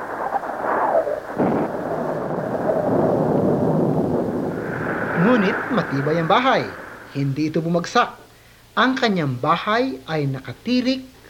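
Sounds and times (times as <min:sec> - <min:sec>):
storm with pouring rain: 0:00.0 - 0:08.8
storm wind: 0:00.0 - 0:11.2
speech: 0:05.2 - 0:08.2, 0:08.8 - 0:11.2.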